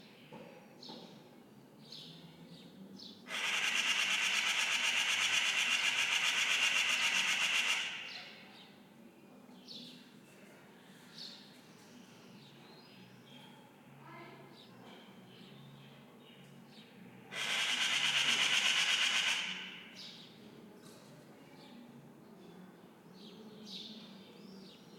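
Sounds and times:
magpie calling on a residential morning: 3.3s - 8.4s, 17.3s - 20.2s
distant traffic on a residential morning: 3.3s - 8.6s, 17.2s - 20.2s
human activities on a residential morning: 3.3s - 24.9s.

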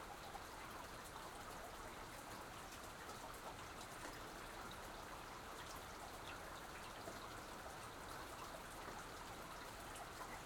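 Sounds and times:
soft rain on an exterior porch: 0.0s - 10.4s.

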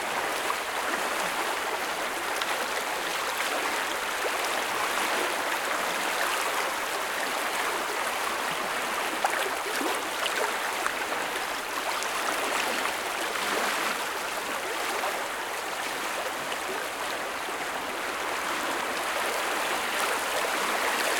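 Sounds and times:
waves on river: 0.0s - 21.1s.

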